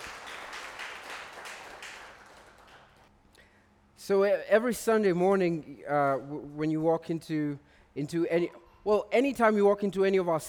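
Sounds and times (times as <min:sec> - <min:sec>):
crowd applauding: 0:00.0 - 0:03.1
speech: 0:04.0 - 0:10.4.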